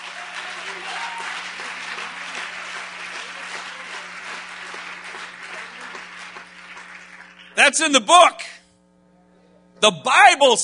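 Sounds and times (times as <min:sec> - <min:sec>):
people clapping hands in church: 0:00.0 - 0:08.0
low steady hum: 0:00.0 - 0:10.6
speech: 0:07.6 - 0:08.5, 0:09.8 - 0:10.6.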